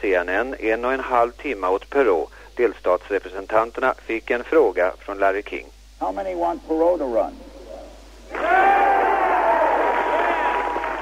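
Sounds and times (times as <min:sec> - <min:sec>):
speech: 0:00.0 - 0:07.4
crowd applause: 0:08.3 - 0:11.0.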